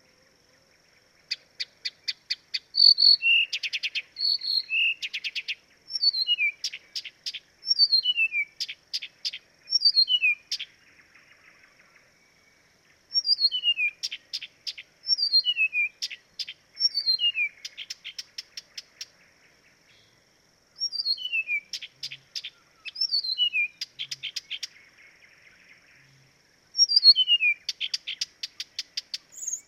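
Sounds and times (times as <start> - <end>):
faint high hiss: 0.0 - 29.6
Blyth's reed warbler song: 1.3 - 10.7, 13.2 - 19.1, 20.8 - 24.8, 26.8 - 29.6.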